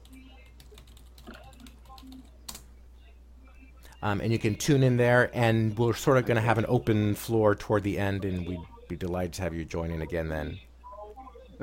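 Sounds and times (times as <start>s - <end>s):
typing on a computer keyboard into a Hangout chat: 0.0s - 2.6s
speech: 4.0s - 10.7s.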